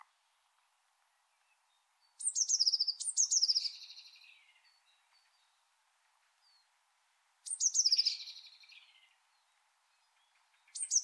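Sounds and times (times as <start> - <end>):
bird giving sharp high descending chirps: 1.3 - 5.7, 7.4 - 11.0.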